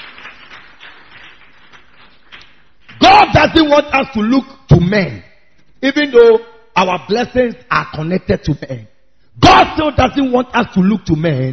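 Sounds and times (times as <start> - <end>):
audience clapping hands: 0.0 - 3.6
speech: 3.4 - 11.5.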